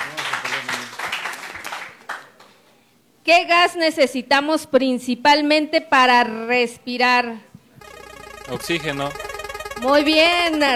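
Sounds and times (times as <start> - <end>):
applause: 0.0 - 2.6
speech: 3.3 - 7.5, 8.5 - 10.7.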